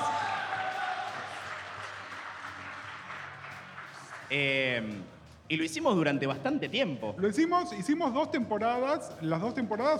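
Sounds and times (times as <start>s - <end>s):
applause: 0.0s - 5.1s
speech: 4.3s - 9.9s.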